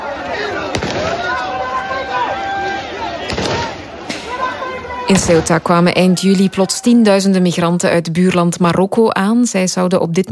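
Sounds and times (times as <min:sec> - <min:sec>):
crowd shouting: 0:00.0 - 0:07.4
warning shots being fired: 0:00.6 - 0:01.3, 0:03.2 - 0:04.5, 0:05.1 - 0:06.5
speech: 0:05.1 - 0:10.3.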